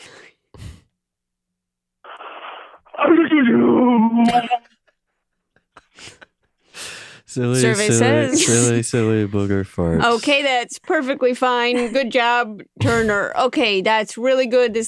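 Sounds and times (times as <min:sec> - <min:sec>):
person imitating a sneeze: 0:02.9 - 0:04.6
speech: 0:03.0 - 0:04.7, 0:07.4 - 0:14.8
short breaths: 0:06.0 - 0:07.3.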